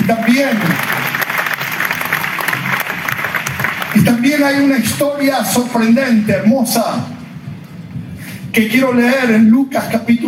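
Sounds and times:
audience applause: 0:00.0 - 0:06.0
speech: 0:00.1 - 0:01.0, 0:04.0 - 0:07.2, 0:08.5 - 0:10.2.

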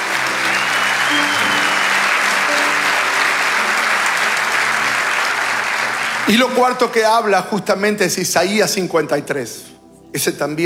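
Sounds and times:
audience applause: 0:00.0 - 0:07.4
speech: 0:06.3 - 0:10.6.

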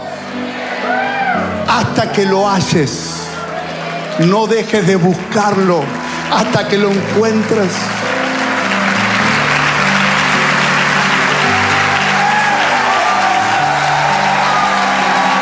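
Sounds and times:
audience applause: 0:00.0 - 0:15.4
speech: 0:01.7 - 0:03.2, 0:04.2 - 0:08.1.

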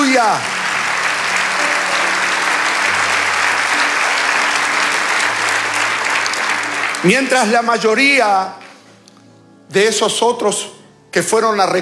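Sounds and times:
audience applause: 0:00.0 - 0:07.9
speech: 0:00.2 - 0:00.6, 0:07.0 - 0:08.6, 0:09.7 - 0:11.8.

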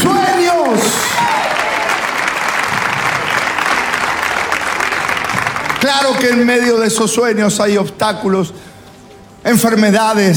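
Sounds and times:
audience applause: 0:00.0 - 0:07.2
speech: 0:05.9 - 0:08.7, 0:09.4 - 0:10.3.

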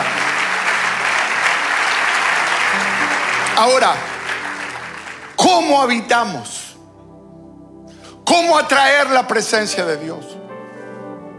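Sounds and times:
audience applause: 0:00.0 - 0:06.7
speech: 0:03.6 - 0:04.1, 0:05.4 - 0:06.6, 0:08.3 - 0:10.4.

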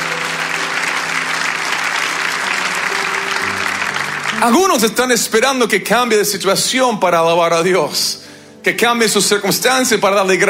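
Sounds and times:
audience applauding: 0:00.0 - 0:06.0
speech: 0:04.4 - 0:10.4.

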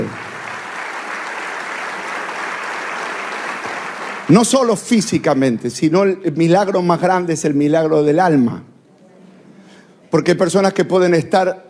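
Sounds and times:
audience applause: 0:00.0 - 0:04.5
speech: 0:04.3 - 0:08.7, 0:10.1 - 0:11.6.

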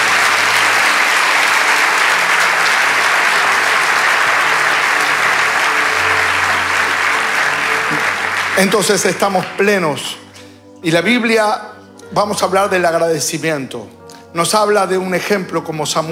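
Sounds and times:
audience clapping: 0:00.0 - 0:10.7
speech: 0:08.6 - 0:10.2, 0:10.8 - 0:16.1.

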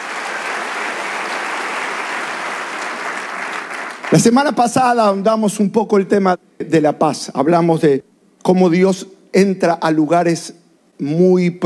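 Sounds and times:
congregation applauding during a church worship service: 0:00.0 - 0:04.6
speech: 0:04.1 - 0:11.6.

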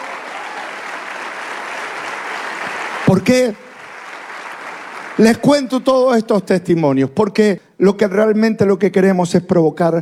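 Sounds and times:
congregation applause during a church service: 0:00.0 - 0:05.8
speech: 0:03.1 - 0:03.7, 0:05.2 - 0:10.0.

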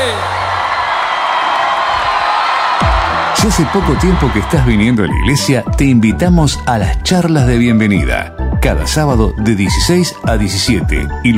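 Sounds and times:
crowd applause: 0:00.0 - 0:05.8
speech: 0:03.4 - 0:11.3.

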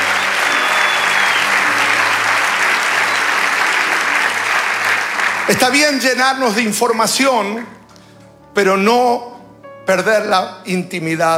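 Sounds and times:
audience applause: 0:00.0 - 0:08.6
speech: 0:05.5 - 0:07.8, 0:08.6 - 0:09.3, 0:09.9 - 0:11.3.

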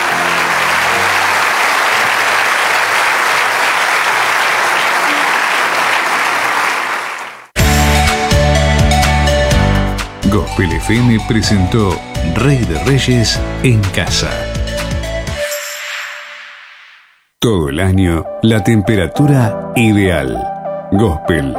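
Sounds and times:
audience applause: 0:00.0 - 0:07.7
music with steady tones: 0:07.6 - 0:15.7
speech: 0:10.6 - 0:14.5, 0:17.4 - 0:21.5.

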